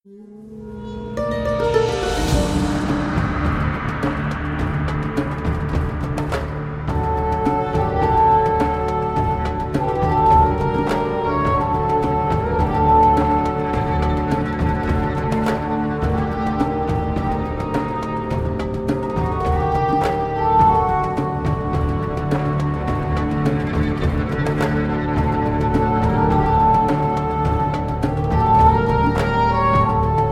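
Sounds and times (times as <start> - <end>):
desert music: 0.1 - 30.3.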